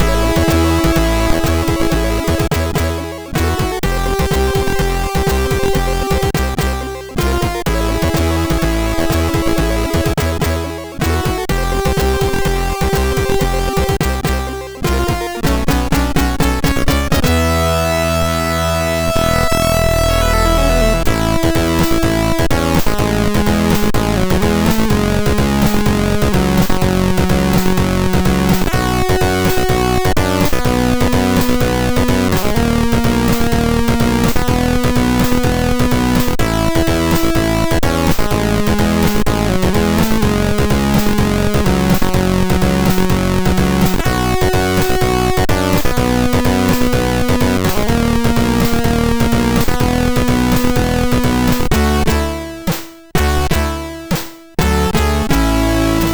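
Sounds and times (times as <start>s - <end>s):
MOS6581R3 SID chip music: 0.0s - 56.1s.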